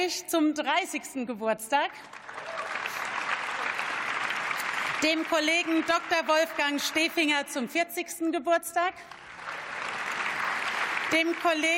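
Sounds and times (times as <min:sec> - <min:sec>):
speech: 0:00.0 - 0:02.6, 0:05.0 - 0:09.2, 0:11.1 - 0:11.7
parliamentary chamber applauding birthday congratulations: 0:02.0 - 0:06.3, 0:09.0 - 0:11.7.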